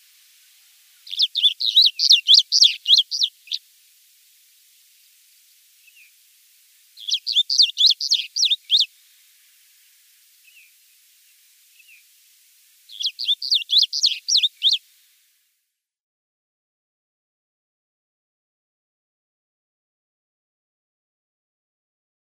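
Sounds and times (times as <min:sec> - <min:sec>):
Striated Bunting singing: 0:00.9 - 0:03.6, 0:07.0 - 0:08.9, 0:12.9 - 0:14.8.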